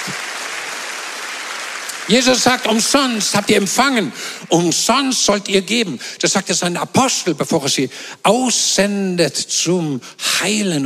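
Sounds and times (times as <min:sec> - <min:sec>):
crowd applauding: 0:00.0 - 0:04.8
speech: 0:02.1 - 0:10.8.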